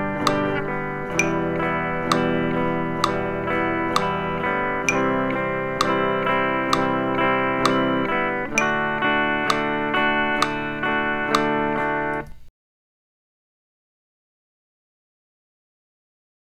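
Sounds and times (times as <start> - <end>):
guitar chord switching in eighth notes: 0.0 - 12.5.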